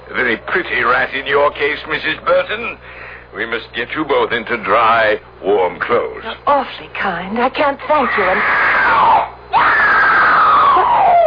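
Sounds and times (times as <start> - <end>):
speech: 0.1 - 9.1
person screaming: 8.0 - 11.2.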